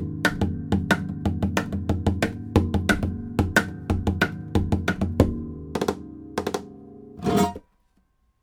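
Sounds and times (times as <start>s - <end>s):
drums: 0.0s - 6.7s.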